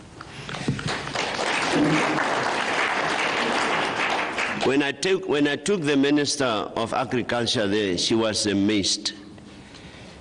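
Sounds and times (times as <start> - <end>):
applause: 0.6 - 4.8
speech: 1.8 - 2.2, 4.7 - 9.2.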